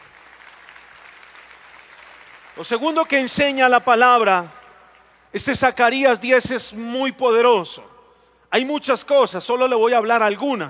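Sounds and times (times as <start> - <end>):
audience applause: 0.0 - 2.9
speech: 2.6 - 4.6, 5.3 - 7.9, 8.5 - 10.6.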